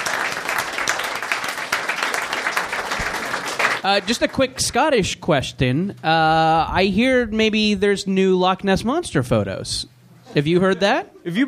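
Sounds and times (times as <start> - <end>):
audience applause: 0.0 - 4.4
speech: 3.8 - 11.4.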